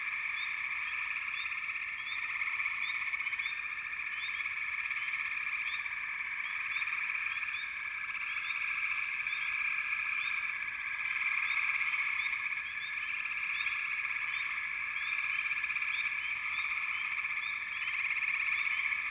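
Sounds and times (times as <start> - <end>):
frog chorus: 0.0 - 19.1.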